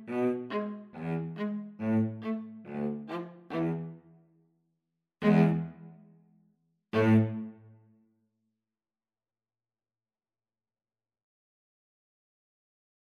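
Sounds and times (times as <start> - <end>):
string trio playing a gavotte: 0.0 - 4.0, 5.2 - 5.9, 7.0 - 7.5.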